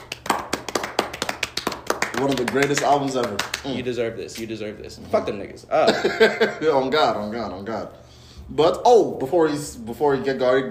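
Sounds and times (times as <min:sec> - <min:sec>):
hands clapping: 0:00.0 - 0:03.8
speech: 0:02.2 - 0:10.6
laughter: 0:05.8 - 0:06.8.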